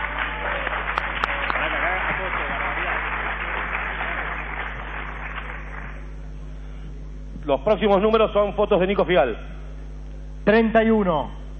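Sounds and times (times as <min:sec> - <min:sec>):
applause: 0:00.0 - 0:06.3
speech: 0:07.5 - 0:09.5, 0:10.4 - 0:11.4.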